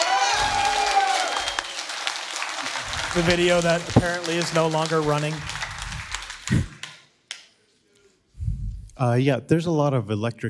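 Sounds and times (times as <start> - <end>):
audience applause: 0.0 - 7.0
speech: 3.1 - 5.6, 9.0 - 10.4.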